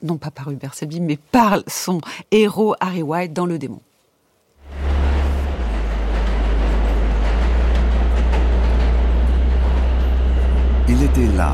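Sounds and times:
speech: 0:00.0 - 0:03.9, 0:11.2 - 0:11.5
subway train brakes screeching at the station: 0:04.6 - 0:11.5
subway trains passing through tunnel: 0:04.6 - 0:11.5.

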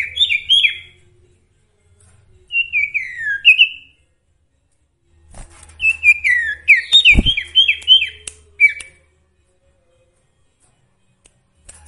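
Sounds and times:
sooty-headed bulbul song: 0:00.0 - 0:01.2, 0:02.4 - 0:04.0, 0:05.8 - 0:09.2.

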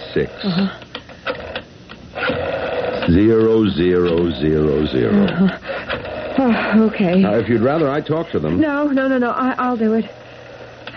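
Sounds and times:
telephone buzzing tone: 0:00.0 - 0:10.9
speech: 0:00.2 - 0:00.8, 0:03.1 - 0:05.8, 0:06.4 - 0:10.2
telephone being dialed, radio drama sound effect: 0:00.8 - 0:06.4.

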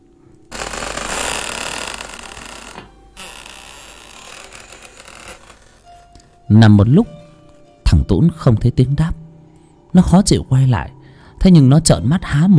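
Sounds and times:
door slowly creaking open: 0:00.5 - 0:06.4
speech: 0:06.5 - 0:07.2, 0:08.1 - 0:09.2, 0:09.9 - 0:12.5.

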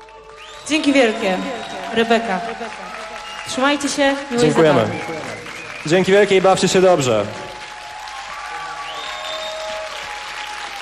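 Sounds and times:
audience applause after a live pop duo concert performance: 0:00.0 - 0:10.8
speech: 0:00.7 - 0:07.4.

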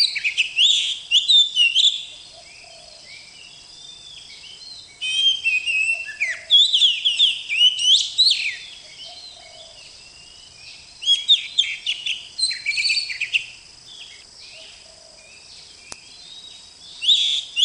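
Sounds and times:
Oriental magpie-robin singing: 0:00.0 - 0:17.6.

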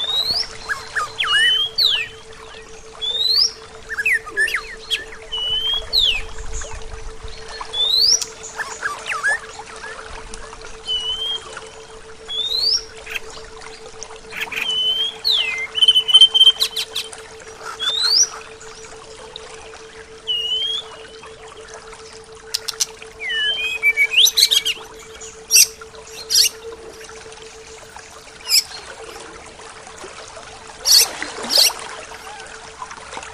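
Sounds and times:
several birds whistling: 0:00.0 - 0:06.6, 0:07.4 - 0:10.0, 0:10.8 - 0:13.3, 0:14.3 - 0:18.9, 0:20.2 - 0:21.2, 0:22.4 - 0:27.1, 0:28.4 - 0:28.9, 0:30.8 - 0:32.6
steady hum: 0:00.0 - 0:33.3.

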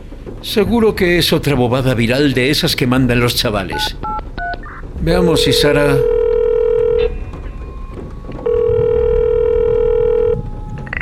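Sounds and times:
speech: 0:00.4 - 0:04.1, 0:05.0 - 0:06.1
mobile phone call dialing and ringing: 0:05.5 - 0:07.1, 0:08.5 - 0:10.4.

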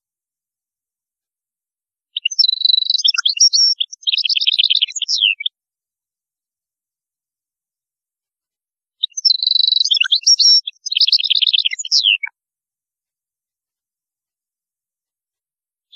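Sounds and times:
European goldfinch song: 0:02.1 - 0:05.6, 0:09.0 - 0:12.4.

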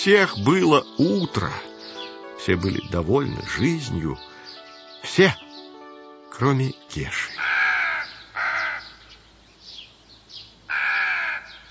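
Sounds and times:
speech: 0:00.0 - 0:01.7, 0:02.4 - 0:04.3, 0:05.0 - 0:05.4, 0:06.4 - 0:07.5
crow cawing: 0:07.3 - 0:09.3, 0:10.7 - 0:11.6.

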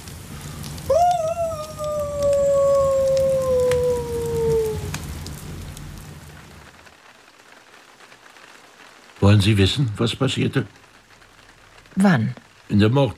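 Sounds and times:
steady rain-like hiss: 0:00.0 - 0:13.1
wolf howling: 0:00.8 - 0:05.4
speech: 0:09.3 - 0:10.8, 0:12.0 - 0:13.1.

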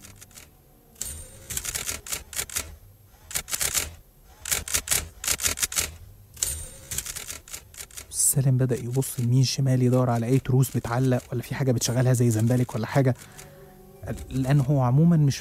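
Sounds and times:
manual typewriter keys typing by themselves: 0:00.0 - 0:13.5
speech: 0:08.4 - 0:13.4, 0:14.1 - 0:15.4.

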